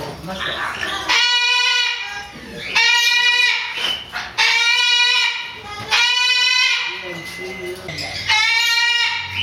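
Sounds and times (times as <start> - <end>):
Moluccan cockatoo parrot calls: 0.3 - 9.4.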